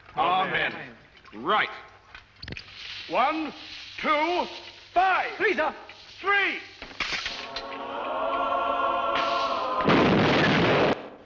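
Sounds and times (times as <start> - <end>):
speech: 0.6 - 1.9, 2.5 - 7.1
sustained tonal swell: 7.4 - 9.9
holy hand grenade exploding in a comedy film scene: 9.2 - 11.2.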